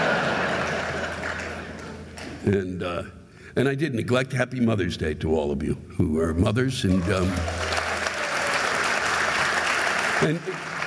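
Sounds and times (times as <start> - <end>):
audience applause: 0.0 - 2.1, 6.9 - 10.8
speech: 2.4 - 7.6, 10.2 - 10.7.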